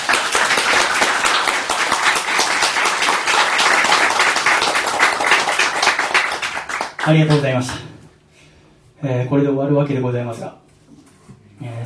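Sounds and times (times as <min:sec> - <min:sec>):
audience applause: 0:00.0 - 0:07.9
speech: 0:07.1 - 0:07.9, 0:09.0 - 0:10.6.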